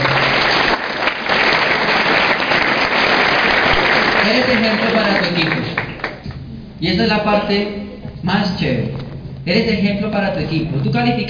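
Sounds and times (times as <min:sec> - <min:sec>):
audience applause: 0:00.0 - 0:06.2
speech: 0:06.8 - 0:11.2.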